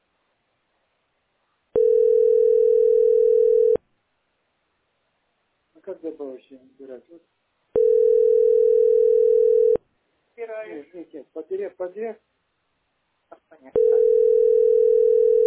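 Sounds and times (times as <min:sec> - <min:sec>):
telephone tones while dialing a number: 0:01.8 - 0:03.8, 0:07.8 - 0:09.8, 0:13.8 - 0:15.4
speech: 0:06.0 - 0:07.5, 0:10.4 - 0:12.3, 0:13.6 - 0:14.0.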